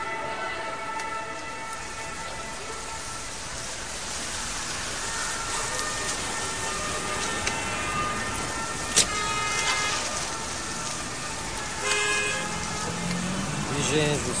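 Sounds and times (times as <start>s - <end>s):
engine and road noise of city traffic: 0.0s - 14.3s
car horns honking in city traffic: 6.6s - 10.4s, 11.7s - 14.3s.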